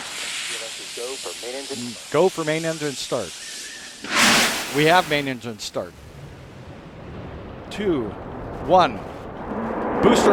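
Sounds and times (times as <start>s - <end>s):
launch pad sound suppression water system hissing: 0.0s - 5.4s
speech: 0.8s - 6.1s, 7.7s - 10.3s.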